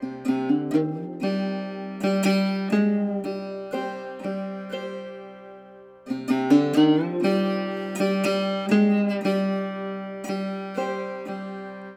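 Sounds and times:
sad guitar music: 0.0s - 11.9s.

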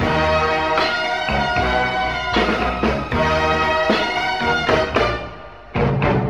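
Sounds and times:
horns: 0.0s - 6.2s.

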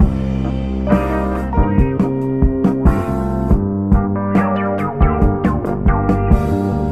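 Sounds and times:
guitar loops: 0.0s - 6.9s.

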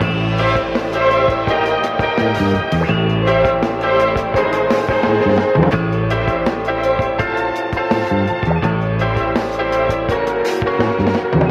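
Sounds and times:
phonk music loops: 0.0s - 11.5s
strings: 0.0s - 11.5s.

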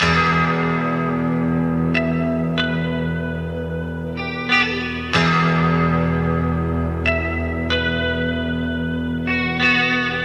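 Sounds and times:
sad guitar loop: 0.0s - 10.2s.

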